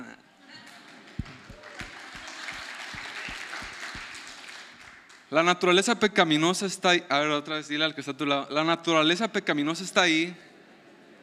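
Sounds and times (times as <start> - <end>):
audience applause: 0.6 - 5.3
speech: 5.3 - 10.5.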